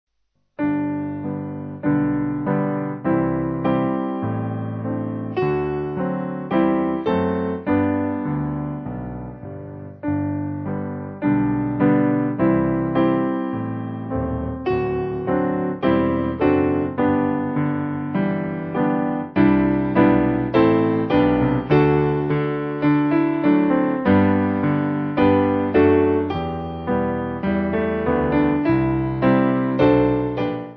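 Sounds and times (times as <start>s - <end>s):
piano: 0.5s - 30.7s.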